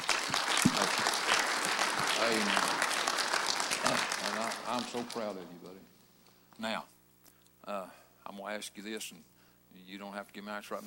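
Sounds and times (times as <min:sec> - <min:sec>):
audience clapping: 0:00.0 - 0:05.8
speech: 0:02.2 - 0:02.7, 0:04.7 - 0:05.9, 0:06.6 - 0:06.9, 0:07.7 - 0:10.8.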